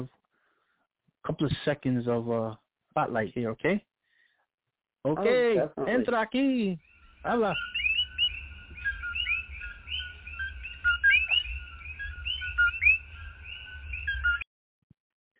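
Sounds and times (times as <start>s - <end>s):
speech: 1.2s - 3.9s, 5.0s - 7.8s
chorus of coqui tree frogs calling: 5.3s - 14.4s.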